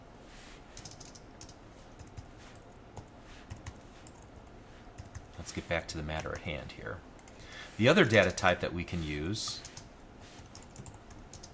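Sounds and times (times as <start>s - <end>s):
quiet hiss: 0.0s - 11.5s
faint computer keyboard typing: 0.7s - 4.3s, 4.9s - 6.6s, 9.4s - 11.5s
speech: 5.5s - 7.1s, 7.8s - 9.7s.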